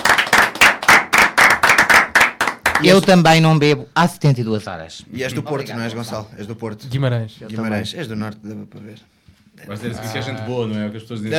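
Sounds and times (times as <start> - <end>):
small studio audience clapping on a morning radio show: 0.0 - 3.4
speech: 2.8 - 11.3.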